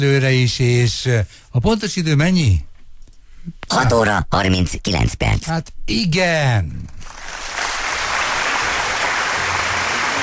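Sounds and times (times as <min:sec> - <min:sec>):
speech: 0:00.0 - 0:02.7, 0:03.4 - 0:07.5
audience applause: 0:07.0 - 0:10.2.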